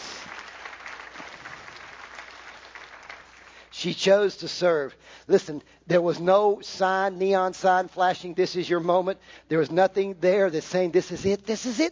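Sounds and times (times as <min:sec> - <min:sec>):
audience applauding: 0:00.0 - 0:03.7
speech: 0:03.8 - 0:11.9.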